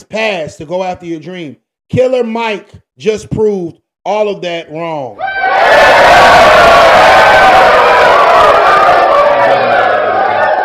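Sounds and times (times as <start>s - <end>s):
speech: 0.0s - 7.6s
large crowd cheering and applauding: 5.2s - 10.6s.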